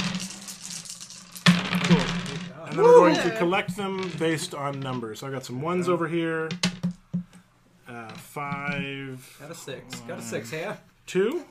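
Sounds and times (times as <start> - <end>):
dice being rolled on table: 0.0 - 9.1
speech: 2.8 - 6.7, 8.0 - 11.5.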